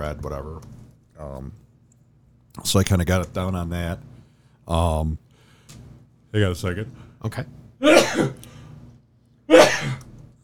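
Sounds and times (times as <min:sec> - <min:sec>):
speech: 0:00.0 - 0:01.6, 0:02.6 - 0:04.1, 0:04.7 - 0:05.2, 0:06.3 - 0:08.5, 0:09.5 - 0:10.0
person with allergies sneezing: 0:07.8 - 0:08.4, 0:09.5 - 0:10.0.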